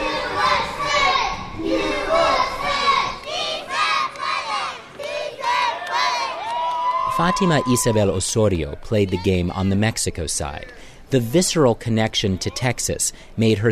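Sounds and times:
crowd cheering: 0.0s - 8.4s
speech: 7.2s - 13.6s.

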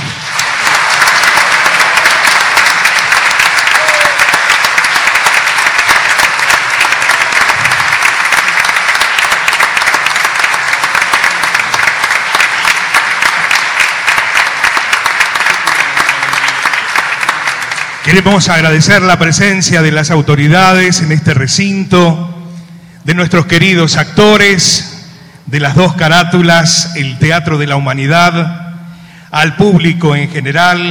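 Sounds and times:
loud audience applause: 0.0s - 18.3s
speech: 18.1s - 22.3s, 23.1s - 24.9s, 25.5s - 28.6s, 29.3s - 30.8s.

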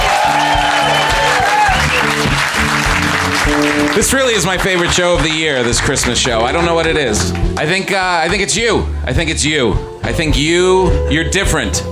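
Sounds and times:
audience applause for the band: 0.0s - 7.6s
speech: 4.0s - 11.8s.

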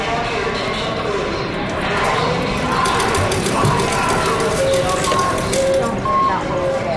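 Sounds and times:
crowds at the Reno, Nevada airport: 0.0s - 6.9s
slot machines at the Reno, Nevada airport: 2.2s - 6.8s.

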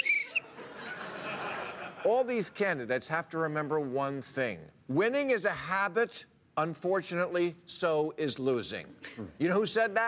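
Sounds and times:
coach's whistle blast: 0.0s - 0.4s
soft hiss: 0.0s - 10.0s
laughter: 0.4s - 2.1s
speech: 2.0s - 10.0s.

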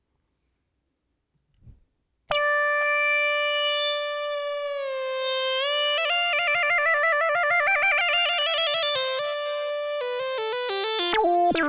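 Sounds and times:
vintage analog synthesizer: 2.3s - 11.2s.

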